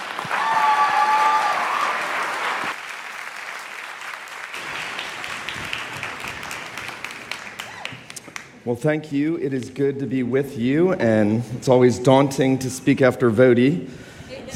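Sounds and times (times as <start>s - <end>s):
audience round of applause: 0.0s - 8.6s
speech: 8.7s - 14.1s.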